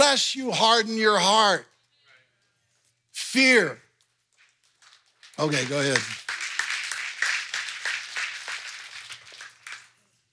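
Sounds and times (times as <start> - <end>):
speech: 0.2 - 1.7, 3.3 - 3.8, 5.4 - 6.2
light scattered clapping from a group: 4.0 - 10.2.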